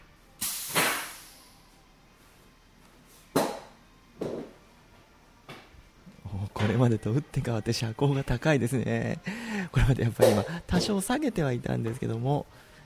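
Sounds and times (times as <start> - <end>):
pneumatic hissing from a car lift jack being lowered: 0.4 - 1.5
speech: 6.6 - 12.7.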